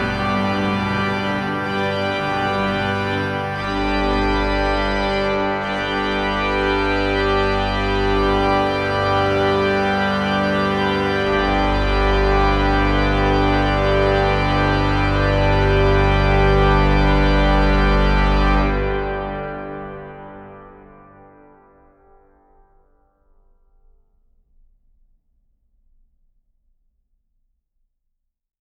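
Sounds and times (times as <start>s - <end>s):
organ fanfare: 0.0s - 21.3s.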